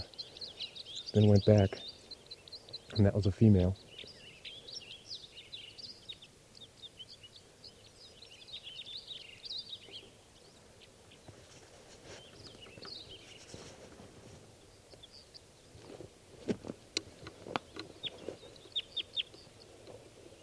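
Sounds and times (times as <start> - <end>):
birds chirping outdoors: 0.0 - 20.4
speech: 1.1 - 1.9, 2.9 - 3.8
sharp clicks and knocks: 16.5 - 17.9.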